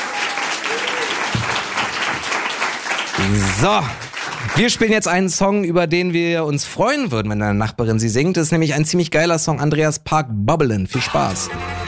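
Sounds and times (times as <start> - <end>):
audience applause: 0.0 - 5.2
speech: 3.2 - 11.8.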